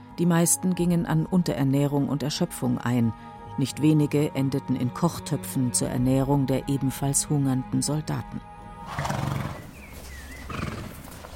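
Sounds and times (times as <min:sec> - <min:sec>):
speech: 0:00.2 - 0:09.2
horses snorting and blowing: 0:08.8 - 0:11.3
hoof clops: 0:08.9 - 0:11.3.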